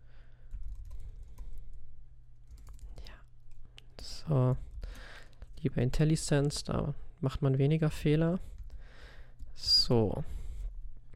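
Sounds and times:
low electrical hum: 0.0s - 11.1s
typing on a computer keyboard: 0.5s - 1.6s
speech: 4.3s - 4.7s, 5.6s - 8.6s, 9.6s - 10.4s.

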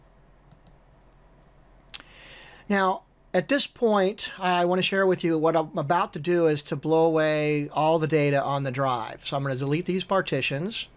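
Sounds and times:
computer mouse clicks in a software installer: 0.5s - 0.8s
speech: 2.7s - 10.9s.

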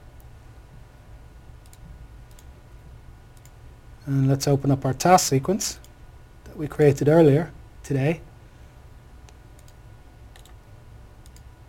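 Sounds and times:
low steady hum: 0.0s - 11.6s
speech: 4.1s - 5.8s, 6.6s - 8.3s
computer mouse clicks: 9.3s - 10.6s, 11.2s - 11.5s.

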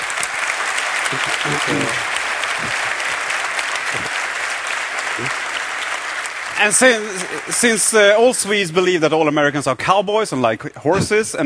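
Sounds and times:
crowd applause: 0.0s - 9.0s
speech: 1.1s - 3.0s, 5.2s - 5.4s, 6.6s - 11.4s.

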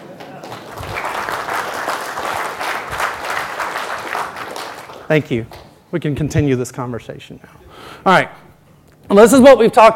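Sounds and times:
audience applause: 0.0s - 5.1s
speech: 5.1s - 8.5s, 9.1s - 9.9s.

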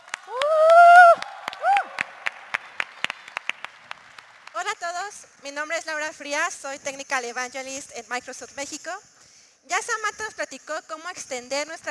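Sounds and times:
whooping cheer: 0.0s - 2.6s
small audience applause: 0.0s - 4.6s
speech: 5.1s - 11.8s.

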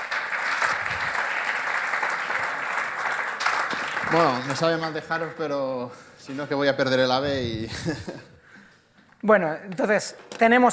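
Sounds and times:
audience applause: 0.0s - 5.6s
speech: 4.1s - 8.3s, 9.2s - 10.7s
laughter: 7.4s - 8.4s.

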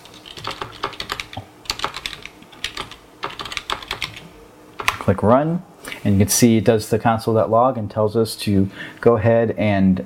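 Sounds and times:
typing a command into PowerShell on a computer keyboard: 0.0s - 5.1s
speech: 5.1s - 10.0s.

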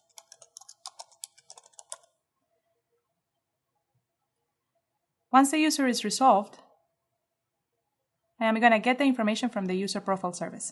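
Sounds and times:
computer keyboard typing a name: 0.0s - 2.2s
speech: 5.3s - 6.6s, 8.4s - 10.7s.

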